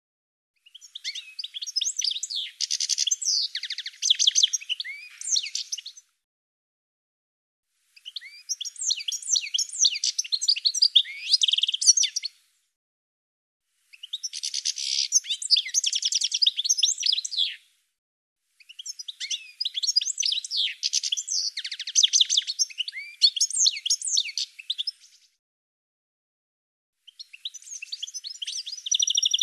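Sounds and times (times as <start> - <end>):
bird twittering: 0.6 - 6.0, 8.0 - 12.3, 13.9 - 17.6, 18.6 - 25.2, 27.1 - 29.4.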